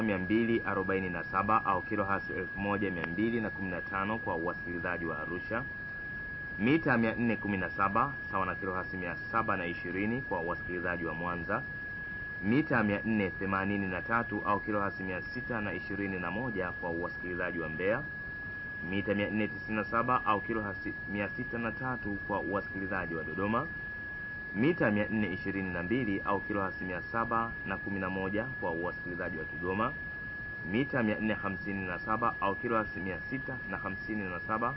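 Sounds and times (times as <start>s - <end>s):
837 kHz medium wave radio broadcast from Tanzania: 0.0s - 34.7s.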